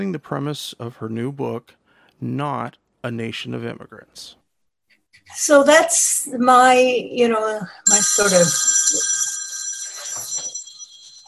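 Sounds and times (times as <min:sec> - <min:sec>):
speech: 0:00.0 - 0:04.4, 0:05.2 - 0:09.1
mobile phone ringtone: 0:07.8 - 0:11.2.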